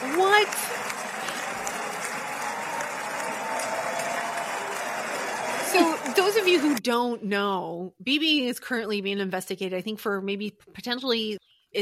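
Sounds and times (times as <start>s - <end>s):
people applauding: 0.0s - 6.8s
speech: 6.2s - 11.8s.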